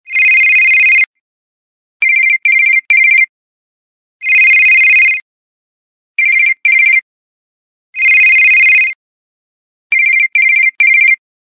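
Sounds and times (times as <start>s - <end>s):
cell phone: 0.1s - 1.1s, 2.0s - 3.3s, 4.2s - 5.2s, 6.2s - 7.0s, 8.0s - 9.0s, 9.9s - 11.2s.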